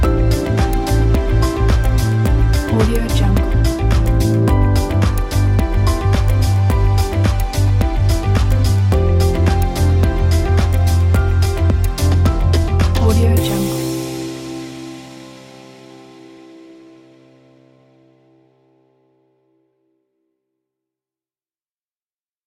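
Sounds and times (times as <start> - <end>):
tech innovation music: 0.0 - 17.4.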